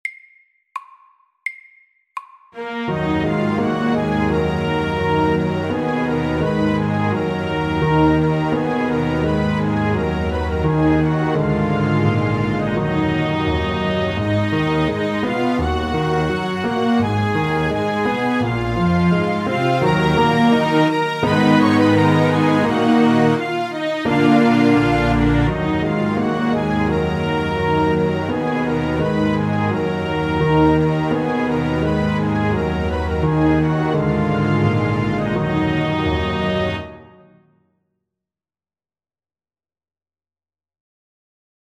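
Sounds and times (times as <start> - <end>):
slow old French melody: 2.6 - 37.3.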